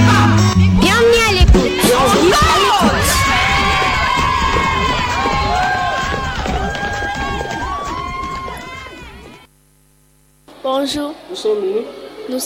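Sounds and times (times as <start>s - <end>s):
children shouting and cheering at a school complex: 0.0s - 9.4s
speech: 10.8s - 12.4s.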